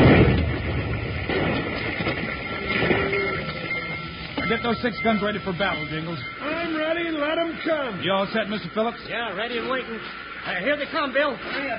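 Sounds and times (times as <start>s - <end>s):
dynamite explosion: 0.0s - 4.6s
thin steady tone: 2.0s - 11.3s
speech: 4.6s - 11.7s.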